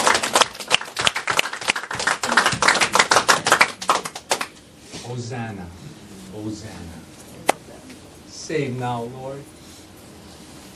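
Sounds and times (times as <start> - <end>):
audience clapping as a clap offering: 0.0 - 4.6
speech: 5.1 - 7.2, 8.5 - 9.6.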